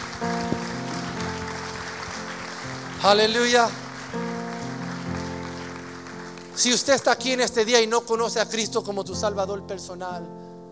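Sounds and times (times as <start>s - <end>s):
audience applauding: 0.0s - 7.8s
speech: 3.0s - 3.8s, 6.6s - 10.4s.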